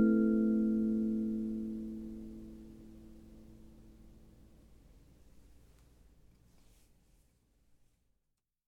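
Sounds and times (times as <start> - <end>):
Hokema B9 kalimba: 0.0 - 2.4.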